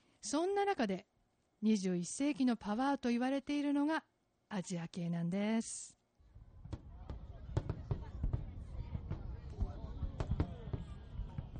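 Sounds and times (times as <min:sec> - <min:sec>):
speech: 0:00.2 - 0:06.0
Independence Day fireworks exploding: 0:06.6 - 0:11.5.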